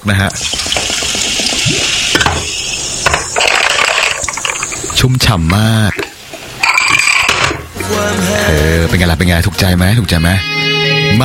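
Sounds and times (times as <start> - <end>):
speech: 0.0 - 0.9, 5.0 - 6.0, 7.9 - 11.2
drink poured into a glass: 0.3 - 7.1
glass clinks: 6.6 - 7.6.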